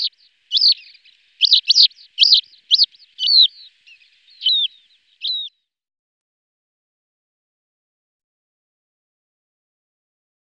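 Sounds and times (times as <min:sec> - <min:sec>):
lesser short-toed lark song: 0:00.0 - 0:05.6.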